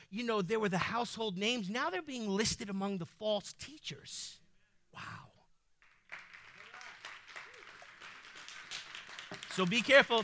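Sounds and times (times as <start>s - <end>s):
speech: 0.1s - 5.3s, 9.6s - 10.2s
audience clapping: 5.8s - 10.2s.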